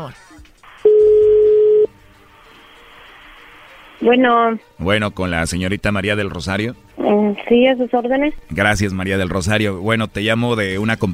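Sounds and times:
speech: 0:00.0 - 0:00.6, 0:04.0 - 0:11.1
telephone ringback tone: 0:00.8 - 0:01.9.

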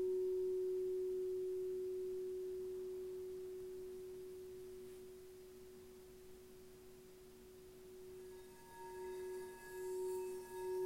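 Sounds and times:
heart chakra singing bowl ringing: 0:00.0 - 0:05.2, 0:07.9 - 0:10.8.

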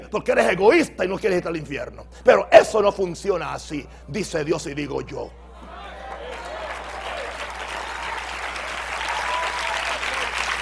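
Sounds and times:
speech: 0:00.1 - 0:05.4
audience applause: 0:05.7 - 0:10.6.

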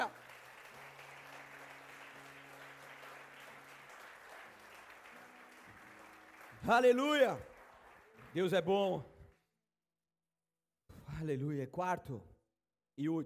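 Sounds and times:
people applauding: 0:00.0 - 0:09.5
speech: 0:06.6 - 0:07.5, 0:08.4 - 0:09.1, 0:11.2 - 0:12.3, 0:13.0 - 0:13.2.

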